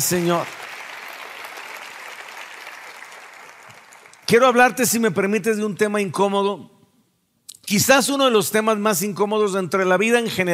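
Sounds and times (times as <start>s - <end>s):
speech: 0.0s - 0.6s, 4.3s - 6.8s, 7.7s - 10.5s
audience applause: 0.0s - 4.3s.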